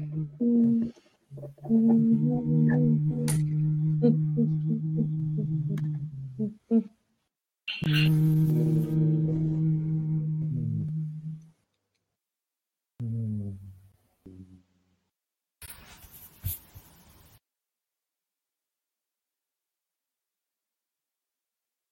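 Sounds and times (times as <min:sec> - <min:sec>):
hum: 0:00.0 - 0:07.0, 0:07.8 - 0:11.8, 0:13.0 - 0:15.1.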